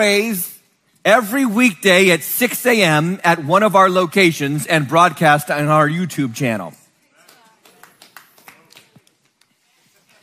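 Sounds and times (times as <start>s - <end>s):
speech: 0.0s - 6.8s
weak clapping from audience: 7.2s - 9.6s.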